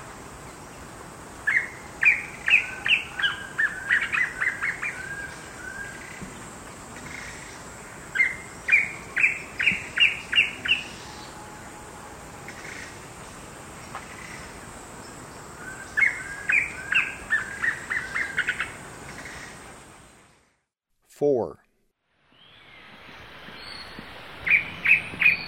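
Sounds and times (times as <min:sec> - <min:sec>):
Black Antbird calling in the eastern lowlands of South America: 0:01.5 - 0:06.3, 0:07.0 - 0:11.5, 0:15.6 - 0:19.6, 0:23.6 - 0:25.4.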